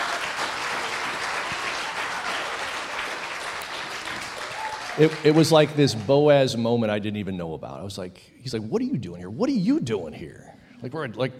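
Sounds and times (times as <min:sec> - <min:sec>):
audience applause: 0:00.0 - 0:06.4
speech: 0:05.0 - 0:11.3.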